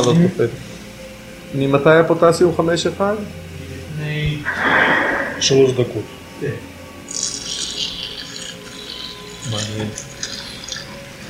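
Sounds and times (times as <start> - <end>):
speech: 0.0 - 0.7, 1.5 - 3.4, 4.0 - 6.7, 9.5 - 10.0
warm water dripping during heart surgery: 7.1 - 11.0.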